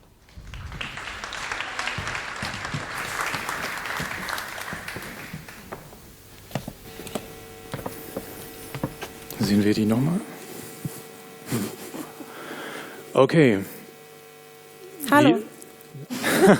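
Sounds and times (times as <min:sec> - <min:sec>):
audience applause: 0:00.0 - 0:06.0
laughter: 0:00.8 - 0:05.4, 0:10.8 - 0:12.6, 0:16.0 - 0:16.5
speech: 0:09.5 - 0:10.3, 0:13.2 - 0:13.8, 0:15.2 - 0:15.4.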